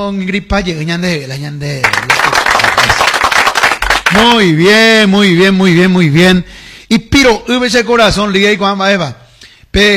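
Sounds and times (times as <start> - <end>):
speech: 0.0 - 2.4, 4.1 - 9.2, 9.8 - 9.9
dense crackling applause: 1.8 - 4.4.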